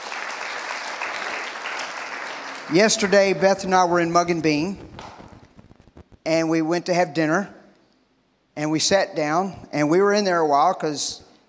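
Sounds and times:
church congregation clapping during a sermon: 0.0 - 5.6
speech: 2.7 - 4.9, 6.3 - 7.6, 8.6 - 11.2.

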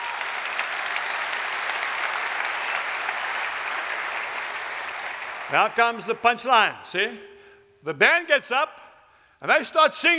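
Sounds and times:
audience clapping: 0.0 - 6.4
speech: 5.5 - 8.6, 9.4 - 10.1.

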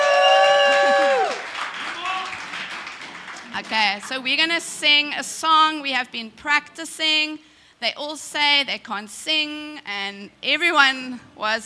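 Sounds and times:
audience applause: 0.0 - 4.1
speech: 3.6 - 11.6.

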